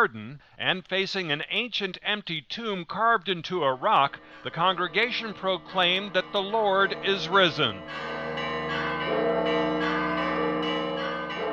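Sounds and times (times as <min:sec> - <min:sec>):
speech: 0:00.0 - 0:08.8
several church bells ringing in a dense continuous peal: 0:03.8 - 0:11.5.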